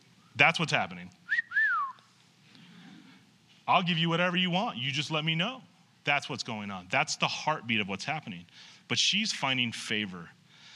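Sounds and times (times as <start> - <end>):
speech: 0.4 - 1.4, 3.7 - 10.4
catcall whistle: 1.3 - 2.1.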